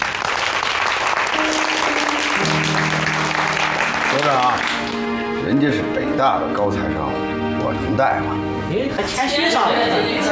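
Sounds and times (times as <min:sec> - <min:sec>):
applause: 0:00.0 - 0:05.2
speech: 0:04.2 - 0:10.3.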